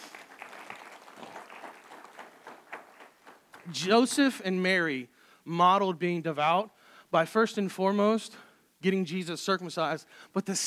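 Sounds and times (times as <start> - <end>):
audience applause: 0.0 - 4.0
speech: 3.7 - 10.6.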